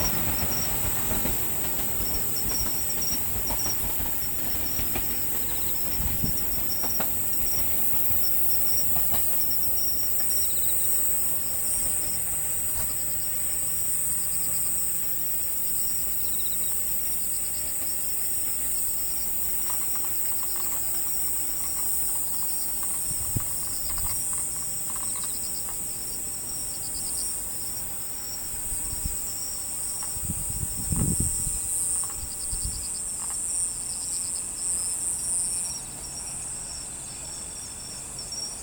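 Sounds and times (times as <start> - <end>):
crickets trilling: 0.0 - 38.6.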